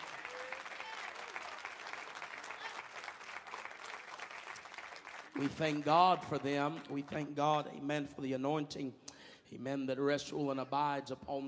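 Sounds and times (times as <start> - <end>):
audience clapping: 0.0 - 7.2
speech: 5.4 - 11.4.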